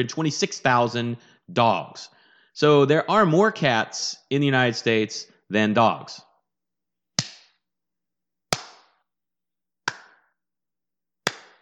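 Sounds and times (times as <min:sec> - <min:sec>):
speech: 0:00.0 - 0:06.3
slow clap: 0:09.9 - 0:10.3, 0:11.3 - 0:11.6.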